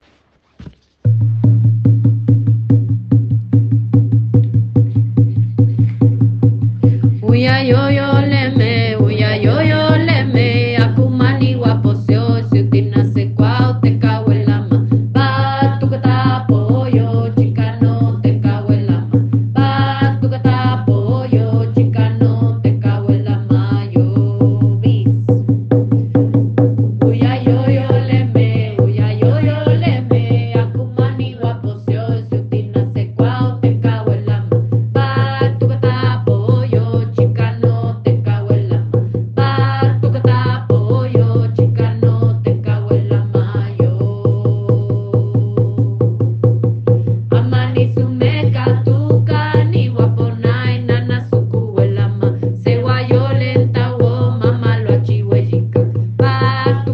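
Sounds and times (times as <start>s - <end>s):
spirit dance songs with drum: 0.0s - 56.9s.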